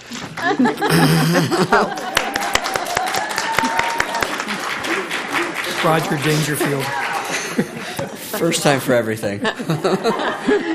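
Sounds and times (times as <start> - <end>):
audience clapping: 0.2 - 9.0
speech: 0.4 - 2.1, 5.8 - 10.7
laughter: 0.4 - 3.4, 6.3 - 8.7, 9.3 - 10.7.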